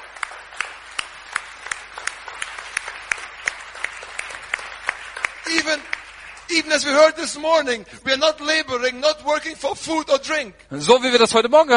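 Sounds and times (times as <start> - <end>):
audience clapping and applauding: 0.0 - 7.8
speech: 5.6 - 11.7.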